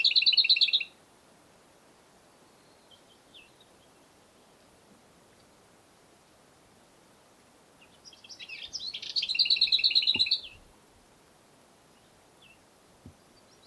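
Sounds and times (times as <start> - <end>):
lesser whitethroat Curruca curruca singing: 2.5 - 4.1, 7.8 - 10.7, 11.9 - 13.6.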